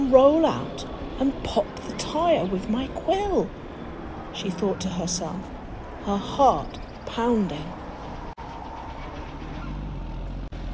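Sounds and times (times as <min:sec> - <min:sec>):
speech: 0:00.1 - 0:03.6, 0:04.4 - 0:07.8
approaching Jeep engine roaring with a rough grinding rumble: 0:08.6 - 0:10.7.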